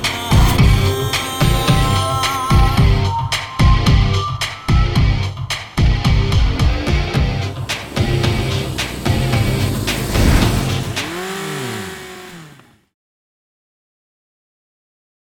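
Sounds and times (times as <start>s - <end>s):
theme music: 0.0s - 11.9s.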